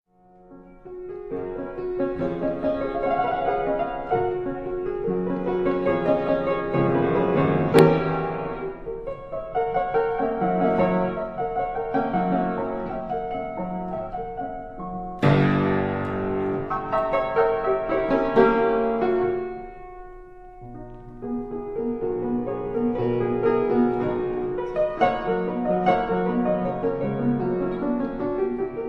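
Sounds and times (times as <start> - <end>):
piano etude in B major: 0.1 - 28.8.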